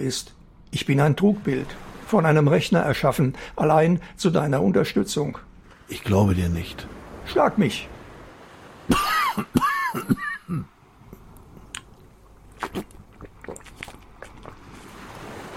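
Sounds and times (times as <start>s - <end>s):
speech: 0.0s - 7.9s, 8.9s - 10.7s, 12.7s - 13.0s
person coughing: 8.9s - 10.7s.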